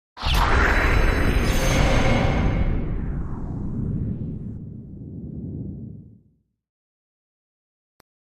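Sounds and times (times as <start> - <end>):
sweep sound: 0.2 - 6.2.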